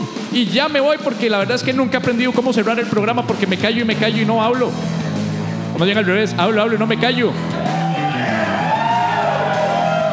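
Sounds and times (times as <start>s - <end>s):
speech: 0.4s - 5.0s, 5.8s - 7.6s
studio audience cheering at the close of a show: 7.3s - 10.1s
studio audience high whoops: 7.7s - 10.1s.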